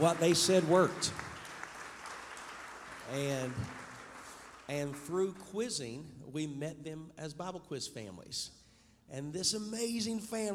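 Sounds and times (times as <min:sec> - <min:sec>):
speech: 0:00.0 - 0:01.3, 0:03.1 - 0:03.8, 0:04.7 - 0:10.5
audience applause welcoming a guest at a panel discussion: 0:00.0 - 0:05.3.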